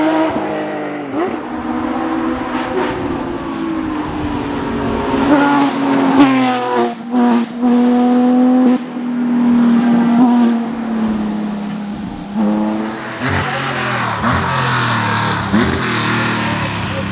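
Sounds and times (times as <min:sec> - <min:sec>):
Porsche car engine: 0:00.0 - 0:17.1.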